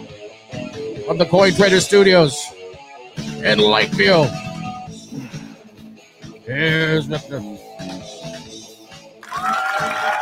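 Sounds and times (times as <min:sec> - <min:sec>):
speech: 0:01.1 - 0:02.6, 0:03.4 - 0:04.4, 0:06.5 - 0:08.0
imaginary studio audience applause: 0:09.2 - 0:10.2.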